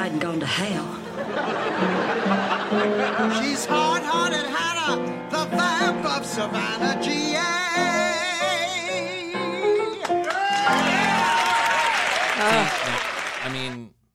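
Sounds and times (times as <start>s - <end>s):
speech: 0.0s - 8.6s
laughter: 1.0s - 4.4s
men applauding: 9.8s - 13.8s.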